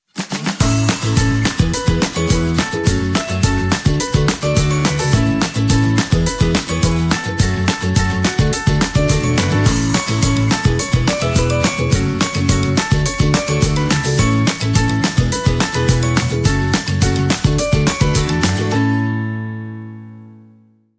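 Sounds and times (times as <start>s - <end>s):
happy fun music: 0.2s - 20.6s.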